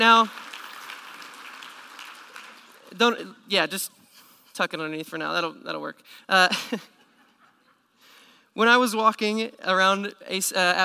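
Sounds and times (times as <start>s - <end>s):
speech: 0.0s - 0.4s, 2.9s - 4.0s, 4.6s - 7.0s, 8.6s - 10.8s
audience applause for a senior receiving a gift: 0.0s - 2.9s.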